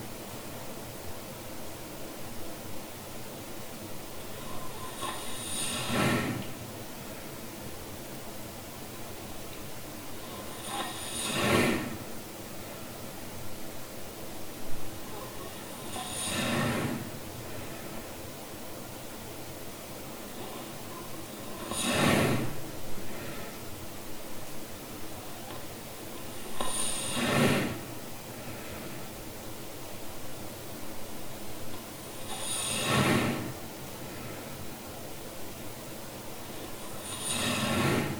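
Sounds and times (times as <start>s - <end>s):
person snoring: 4.3s - 6.6s, 10.2s - 12.1s, 15.1s - 17.2s, 20.3s - 23.5s, 26.3s - 27.9s, 32.1s - 33.6s, 36.5s - 38.1s.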